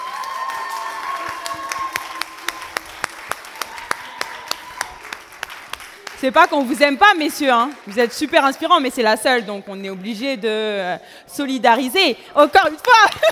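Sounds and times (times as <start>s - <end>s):
audience applauding: 0.0s - 9.2s
speech: 6.2s - 13.3s.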